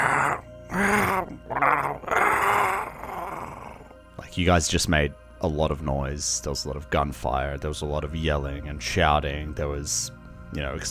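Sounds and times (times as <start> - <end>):
person imitating zombie groans: 0.0 - 4.0
speech: 4.4 - 10.8.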